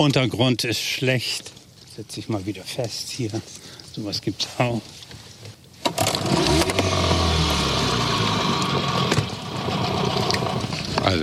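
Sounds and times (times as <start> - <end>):
speech: 0.0 - 5.1
boat motor running in reverse: 5.9 - 11.2.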